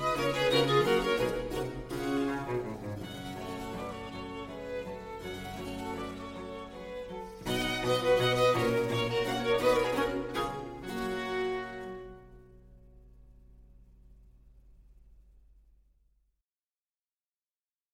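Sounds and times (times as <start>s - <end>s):
two violins playing a pastoral andante in G major: 0.0s - 12.2s.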